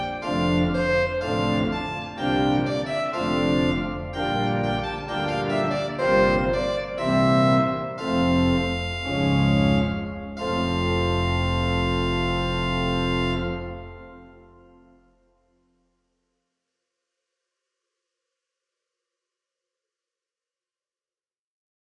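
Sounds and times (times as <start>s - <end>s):
organ fanfare: 0.0s - 15.2s.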